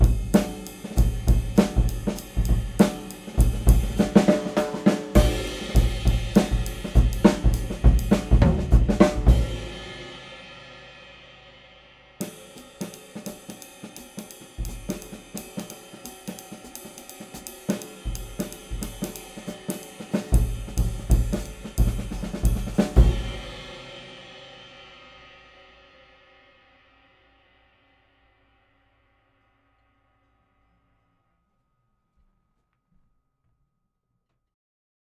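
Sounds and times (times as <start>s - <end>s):
6.5x14 Limited Maple Snare with 30-degree Bearing Edges: 0.0s - 10.2s, 12.2s - 24.0s.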